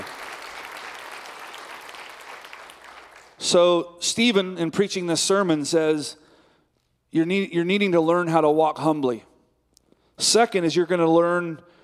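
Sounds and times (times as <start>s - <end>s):
church congregation applause: 0.0s - 3.6s
speech: 3.4s - 6.2s, 7.1s - 9.3s, 10.2s - 11.8s.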